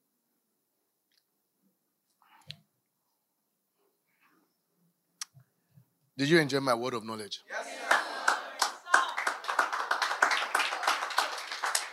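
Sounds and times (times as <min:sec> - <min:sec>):
speech: 0:06.2 - 0:08.1
audience clapping: 0:07.7 - 0:11.9.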